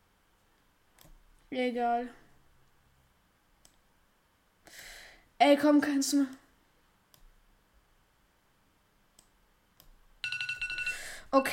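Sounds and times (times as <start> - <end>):
faint ticks and clicks: 0.3 - 1.5, 3.6 - 3.9, 6.2 - 7.4, 9.1 - 10.0
speech: 1.5 - 2.2, 5.4 - 6.4, 11.3 - 11.5
electronic timer alarm ringing: 10.2 - 11.5.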